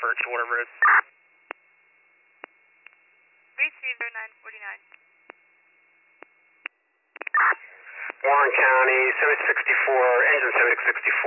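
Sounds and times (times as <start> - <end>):
radio dispatch cancellation tones: 0.0 - 1.1, 3.6 - 4.8, 7.2 - 11.2
speech: 0.1 - 1.2, 3.6 - 5.0, 7.5 - 11.2.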